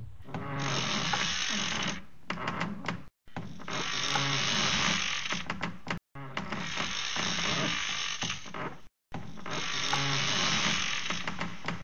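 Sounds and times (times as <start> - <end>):
rocking chair creaking: 0.2 - 11.8.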